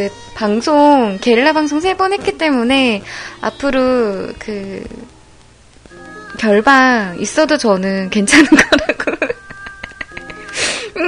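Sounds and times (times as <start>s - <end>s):
speech: 0.0s - 5.2s, 6.4s - 9.3s
crackly clicks: 4.4s - 6.4s
laughter: 8.3s - 10.5s.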